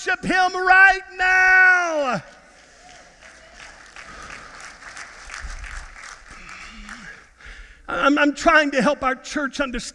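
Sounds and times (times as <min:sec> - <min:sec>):
speech: 0:00.0 - 0:02.4, 0:07.9 - 0:09.9
people clapping in worship: 0:02.5 - 0:07.4.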